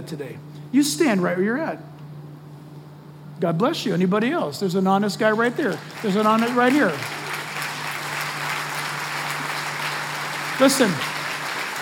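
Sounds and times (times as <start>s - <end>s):
speech: 0.0s - 1.9s, 3.4s - 7.2s, 10.6s - 11.2s
audience clapping: 5.2s - 11.8s.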